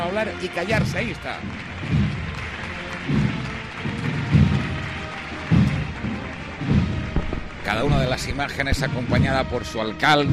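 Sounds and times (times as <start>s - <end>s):
applause from pilgrimage crowd: 0.0s - 9.8s
speech: 0.2s - 2.0s, 7.7s - 10.3s
low dull thump: 6.7s - 9.3s.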